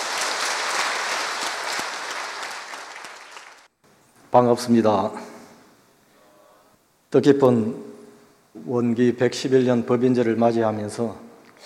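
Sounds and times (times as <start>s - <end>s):
audience applause: 0.0s - 3.7s
speech: 4.3s - 5.3s, 7.1s - 7.9s, 8.6s - 11.6s.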